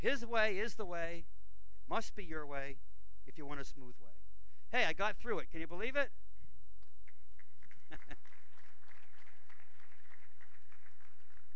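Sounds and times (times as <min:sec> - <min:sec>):
speech: 0:00.0 - 0:06.2, 0:07.9 - 0:08.3
audience clapping: 0:07.0 - 0:11.5.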